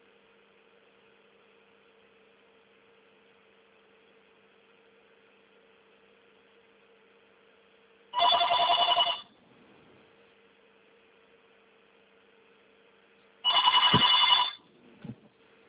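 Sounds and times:
faint steady hum: 0:00.0 - 0:15.6
telephone ringing: 0:08.2 - 0:09.3, 0:13.4 - 0:14.7.

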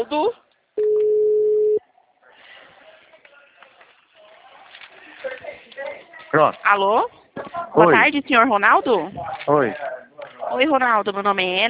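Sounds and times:
speech: 0:00.0 - 0:00.4, 0:06.3 - 0:11.6
outgoing phone call ringback tone: 0:00.8 - 0:01.8.

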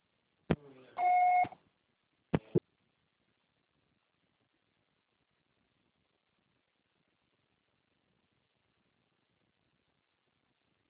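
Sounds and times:
answering machine beep tone: 0:01.0 - 0:01.5.

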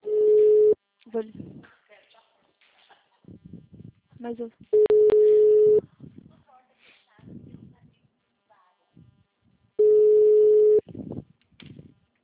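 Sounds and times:
telephone busy tones after a dropped phone call: 0:00.0 - 0:00.8, 0:04.8 - 0:05.8, 0:09.8 - 0:10.8
speech: 0:04.2 - 0:04.9.

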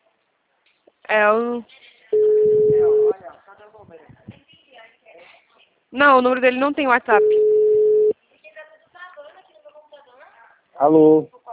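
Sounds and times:
speech: 0:01.1 - 0:01.8, 0:05.9 - 0:07.5, 0:10.8 - 0:11.4
telephone tone after a dropped call: 0:02.2 - 0:03.1, 0:07.1 - 0:08.1.

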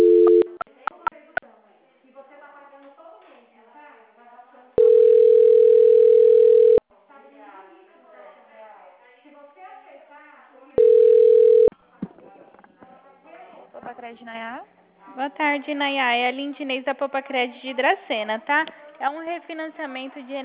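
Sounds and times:
long steady single-pitch telephone tones on a dropped call: 0:00.0 - 0:00.6, 0:04.8 - 0:06.8, 0:10.8 - 0:11.7
short telephone beeps on a dropped call: 0:04.8 - 0:06.8, 0:10.8 - 0:11.7
speech: 0:15.6 - 0:20.4.

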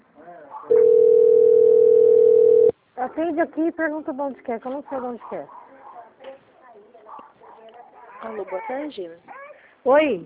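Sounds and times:
telephone dial tone as a call is placed: 0:00.7 - 0:02.7
speech: 0:03.2 - 0:05.6, 0:08.2 - 0:10.2.

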